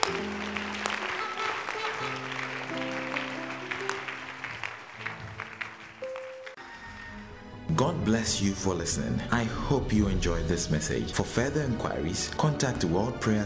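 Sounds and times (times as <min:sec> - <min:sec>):
audience clapping as offering: 0:00.0 - 0:06.6
speech: 0:07.8 - 0:13.4.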